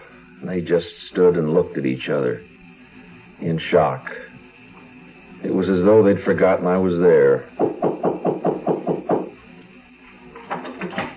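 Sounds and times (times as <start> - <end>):
speech: 0.4 - 2.5, 3.4 - 4.2, 5.4 - 7.7
knocking on a door: 7.6 - 9.3.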